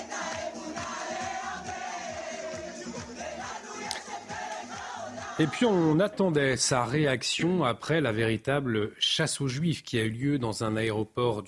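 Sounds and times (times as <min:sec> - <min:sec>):
rhythmic repeating low thump: 0:00.0 - 0:06.1
large crowd cheering and chanting outside a house: 0:00.0 - 0:06.4
speech: 0:05.4 - 0:11.4.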